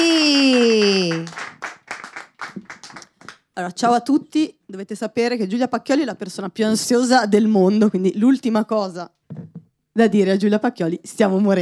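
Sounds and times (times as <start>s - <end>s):
audience applause: 0.0s - 3.4s
speech: 3.6s - 11.6s.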